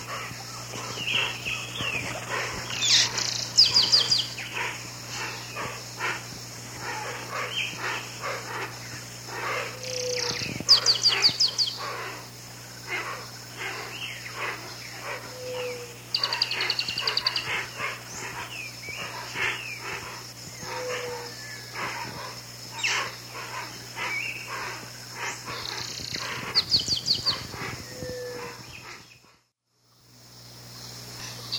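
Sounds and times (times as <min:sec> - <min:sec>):
Pale-eyed Blackbird calling: 0:00.0 - 0:29.4.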